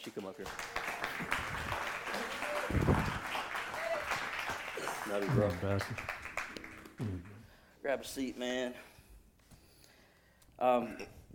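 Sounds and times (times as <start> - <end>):
speech: 0.0 - 1.4, 5.1 - 6.2, 7.0 - 8.9, 10.6 - 11.2
audience applause welcoming a speaker to the platform: 0.4 - 7.3.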